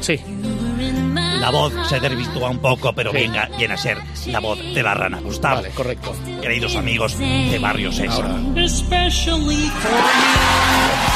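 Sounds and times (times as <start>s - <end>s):
speech: 0.0s - 11.1s
audience applauding: 9.8s - 11.1s.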